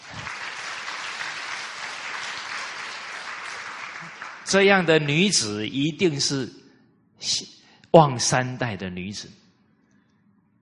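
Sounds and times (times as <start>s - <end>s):
audience applause: 0.0s - 5.1s
speech: 4.5s - 6.6s, 7.2s - 9.4s.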